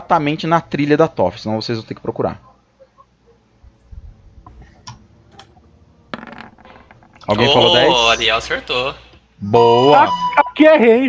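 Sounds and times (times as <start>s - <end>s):
speech: 0.1s - 2.5s, 7.3s - 11.0s
twenty-sided die rolling: 6.1s - 7.4s.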